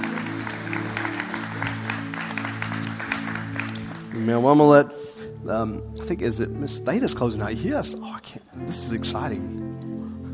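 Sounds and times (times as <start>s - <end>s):
audience applauding: 0.0s - 4.2s
speech: 4.2s - 9.9s.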